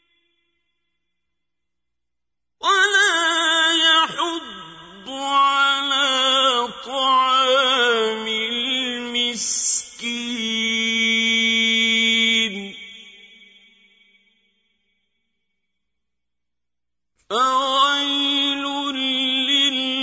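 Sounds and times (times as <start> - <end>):
qari reciting the Quran: 2.6 - 14.2, 17.2 - 20.0.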